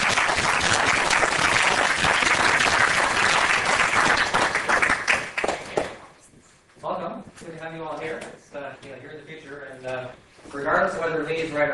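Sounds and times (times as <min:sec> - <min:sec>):
audience applause welcoming a professor before a lecture: 0:00.0 - 0:06.0
speech: 0:07.7 - 0:11.7.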